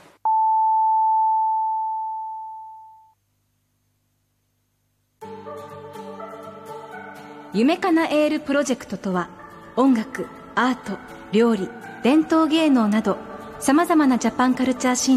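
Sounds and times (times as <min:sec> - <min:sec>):
time signal tone marking six o'clock: 0:00.3 - 0:03.2
music: 0:05.2 - 0:15.1
speech: 0:07.6 - 0:15.1.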